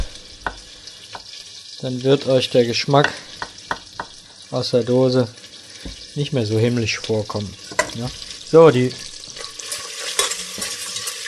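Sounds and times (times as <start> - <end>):
melted butter sizzling in a pot while being stirred: 0.0 - 11.2
speech: 1.8 - 3.3, 4.5 - 9.1.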